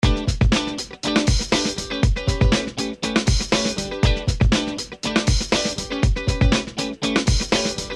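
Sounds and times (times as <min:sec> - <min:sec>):
Fender Stratocaster electric guitar: 0:00.0 - 0:07.9.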